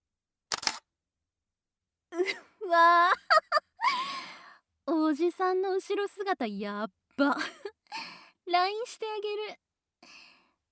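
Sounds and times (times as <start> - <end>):
camera shutter click in a video game: 0.5 - 0.8
speech: 2.2 - 3.2, 5.1 - 7.8, 8.5 - 10.2.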